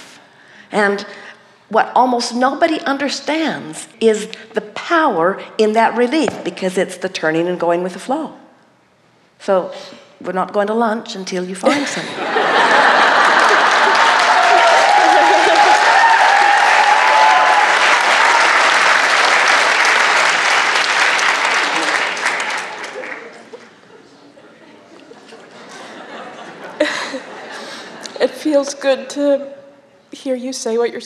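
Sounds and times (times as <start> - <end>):
speech: 0.7 - 8.4, 9.4 - 13.0, 28.6 - 31.0
laughter: 11.7 - 16.5, 21.6 - 28.2
audience applause: 12.5 - 23.7.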